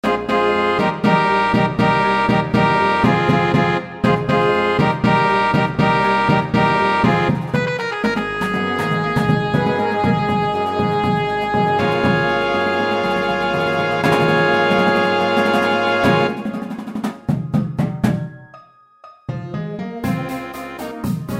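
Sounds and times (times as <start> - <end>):
percussion: 1.0 - 21.3.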